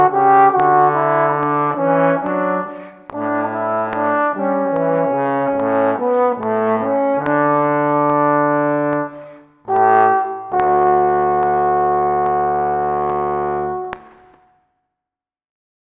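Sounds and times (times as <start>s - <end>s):
trombone in D major: 0.0s - 14.4s.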